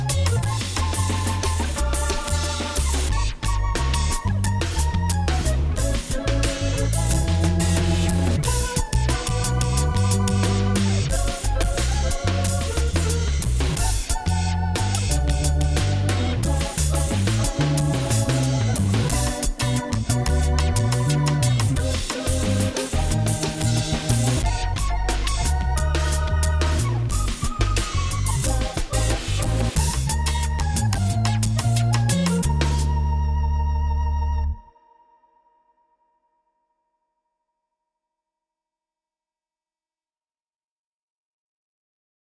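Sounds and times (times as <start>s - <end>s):
chillout music in 4-4 at 90 bpm: 0.0s - 35.7s.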